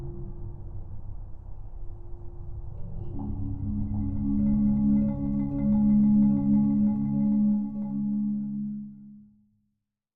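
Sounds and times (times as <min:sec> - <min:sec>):
marimba: 0:03.1 - 0:08.9.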